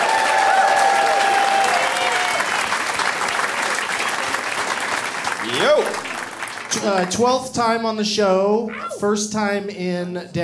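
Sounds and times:
audience applause welcoming a guest onto a show in Denver: 0.0s - 7.4s
speech: 5.7s - 6.0s, 6.7s - 10.4s.

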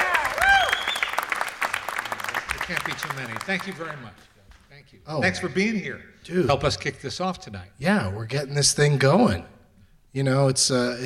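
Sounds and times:
audience applause: 0.0s - 4.2s
speech: 2.7s - 11.0s.

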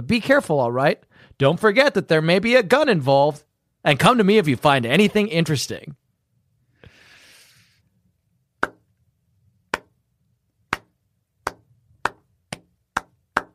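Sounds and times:
speech: 0.0s - 6.0s
slow clap: 8.6s - 8.9s, 9.7s - 10.0s, 10.7s - 13.5s.

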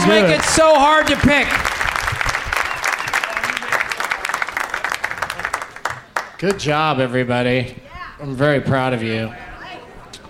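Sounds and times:
audience applause: 0.0s - 6.6s
speech: 0.1s - 1.7s, 6.4s - 9.4s.

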